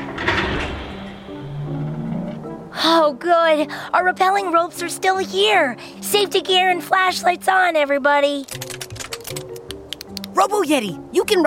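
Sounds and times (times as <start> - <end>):
door opening: 0.0 - 2.7
speech: 2.8 - 8.8, 10.4 - 11.4.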